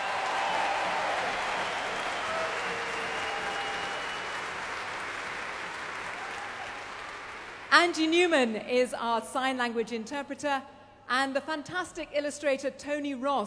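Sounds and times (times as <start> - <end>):
audience cheering: 0.0 - 7.7
speech: 7.8 - 13.4.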